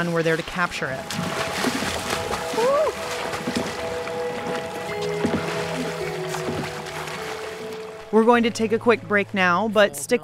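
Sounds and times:
speech: 0.0s - 1.8s, 8.1s - 10.2s
water splashing as a man swims with his sons: 0.0s - 9.3s.

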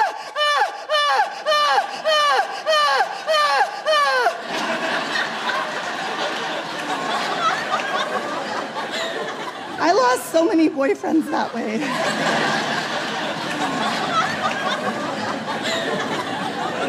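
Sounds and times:
person imitating very loud melodramatic crying: 0.0s - 4.4s
audience laughter: 3.2s - 16.8s
speech: 10.4s - 12.8s.

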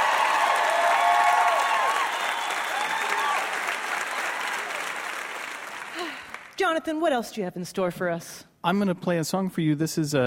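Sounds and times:
whoops and cheers: 0.0s - 5.0s
audience round of applause: 0.0s - 6.6s
speech: 6.7s - 10.2s.

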